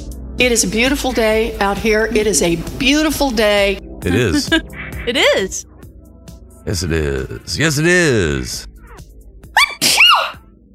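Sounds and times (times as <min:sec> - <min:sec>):
speech: 0:00.4 - 0:05.7, 0:06.6 - 0:08.7
person sneezing: 0:09.6 - 0:10.4.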